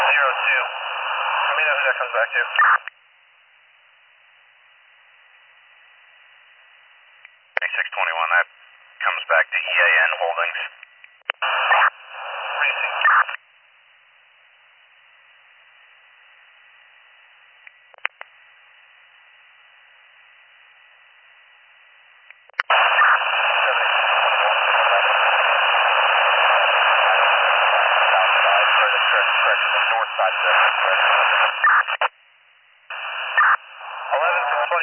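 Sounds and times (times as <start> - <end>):
static on a radio transmission: 0.0 - 2.9, 7.6 - 13.4, 22.6 - 32.1, 32.9 - 34.8
speech: 1.9 - 3.1.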